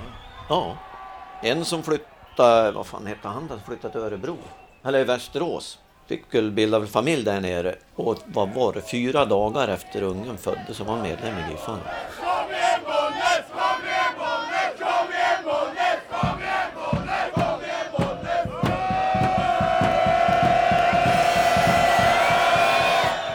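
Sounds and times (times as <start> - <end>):
bandy stadium crowd chanting and cheering before face-off: 0.0 - 4.8, 9.8 - 23.3
speech: 0.5 - 12.2
steady rapid clapping or drumming: 16.2 - 23.3.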